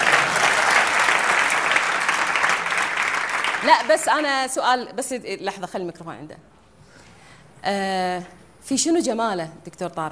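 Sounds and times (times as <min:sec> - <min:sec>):
audience applause for Dr. Tarek Suwaidan: 0:00.0 - 0:04.0
speech: 0:03.6 - 0:06.5, 0:07.6 - 0:10.0.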